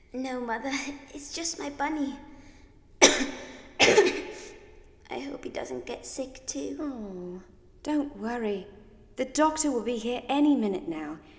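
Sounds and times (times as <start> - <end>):
speech: 0.1 - 2.3, 5.1 - 11.3
person coughing: 3.0 - 4.6.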